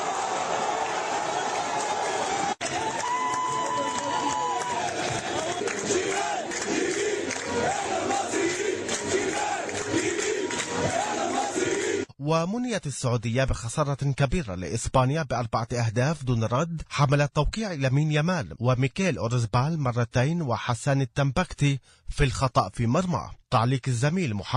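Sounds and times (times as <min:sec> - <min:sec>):
football fans cheering and chanting: 0:00.0 - 0:12.1
speech: 0:12.3 - 0:24.5.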